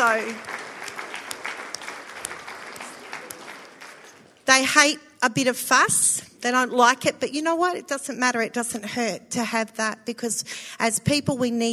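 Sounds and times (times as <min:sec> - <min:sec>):
speech: 0:00.0 - 0:00.6, 0:04.5 - 0:11.7
audience applause: 0:00.0 - 0:04.4.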